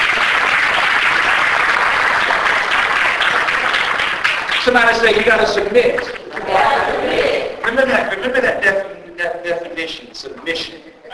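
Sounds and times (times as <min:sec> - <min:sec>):
audience hand clapping: 0:00.0 - 0:08.1
speech: 0:04.7 - 0:10.9.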